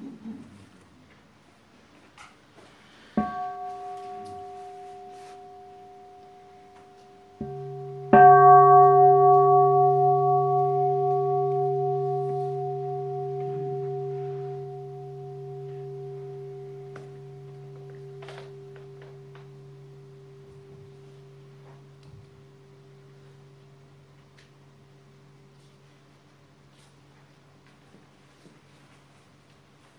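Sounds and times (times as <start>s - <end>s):
signal or alarm bell ringing: 3.2s - 23.8s.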